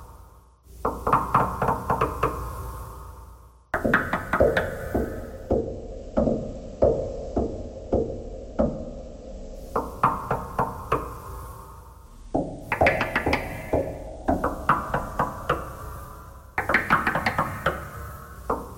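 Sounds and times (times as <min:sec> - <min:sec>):
knocking thread noise: 0:00.8 - 0:02.4, 0:03.8 - 0:09.0, 0:09.6 - 0:11.3, 0:12.3 - 0:18.7.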